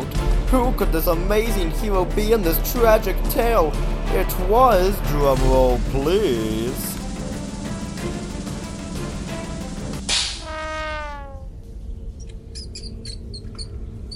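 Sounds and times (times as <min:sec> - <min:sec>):
speech: 0:00.5 - 0:06.9
mouse squeaking: 0:12.2 - 0:14.1.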